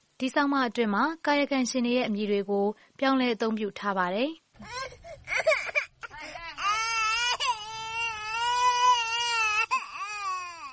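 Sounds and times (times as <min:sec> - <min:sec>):
speech: 0:00.2 - 0:05.5
young child crying in a village: 0:04.6 - 0:10.7.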